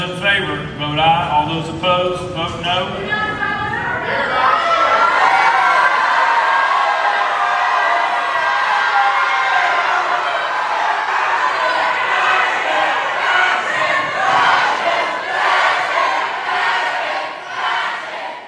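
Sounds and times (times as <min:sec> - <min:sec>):
speech: 0:00.0 - 0:03.5, 0:04.1 - 0:04.6
crowd shouting in legislative gallery: 0:03.1 - 0:18.4.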